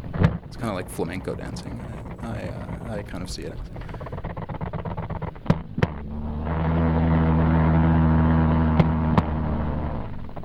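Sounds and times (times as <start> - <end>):
jumping spider vibrations on a nylon surface: 0.0 - 10.4
speech: 0.5 - 4.0.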